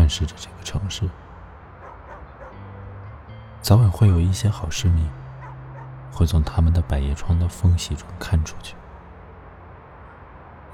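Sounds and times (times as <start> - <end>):
speech: 0.1 - 1.2, 3.6 - 5.2, 6.1 - 8.8
dogs barking and yipping outside: 1.8 - 2.6, 5.3 - 6.0.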